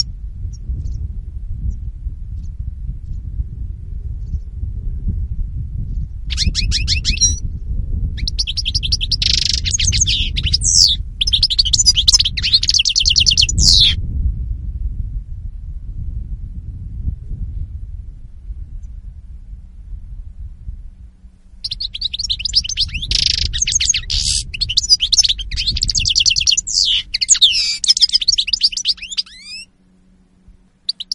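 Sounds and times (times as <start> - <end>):
low rumbling noise: 0.0 - 31.1
European goldfinch twittering song: 6.3 - 7.4, 8.2 - 14.0, 21.6 - 29.7, 30.8 - 31.1.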